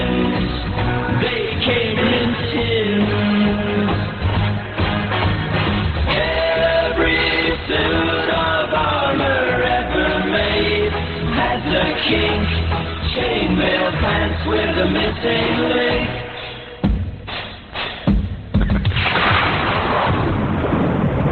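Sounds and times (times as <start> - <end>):
music: 0.0 - 19.0
abrupt crashes: 16.8 - 21.2
crack of lightning and thunder: 18.8 - 21.2.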